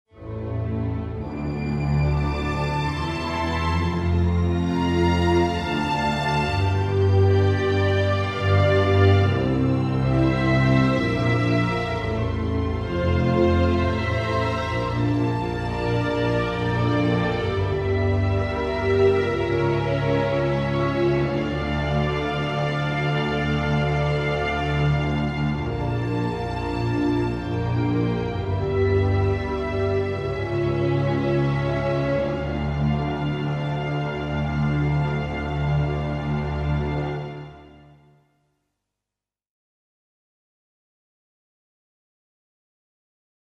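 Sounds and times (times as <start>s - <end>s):
string instruments: 0.0s - 38.2s.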